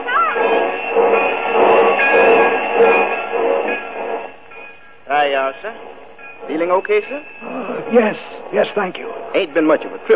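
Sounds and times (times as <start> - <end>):
faint metallic squealing: 0.0 - 10.1
train at a station platform rumbling and hissing: 0.0 - 10.1
speech: 6.6 - 10.1.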